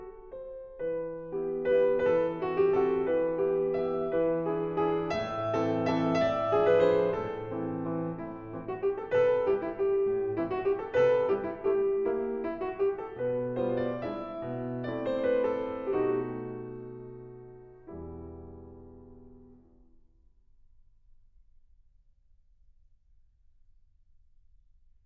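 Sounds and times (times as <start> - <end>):
waltz music: 1.0 - 17.9.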